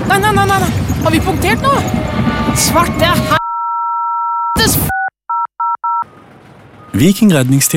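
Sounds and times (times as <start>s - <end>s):
speech: 0.1s - 3.4s, 4.6s - 5.0s, 6.9s - 7.7s
touch-tone dialing beeps: 3.4s - 6.0s.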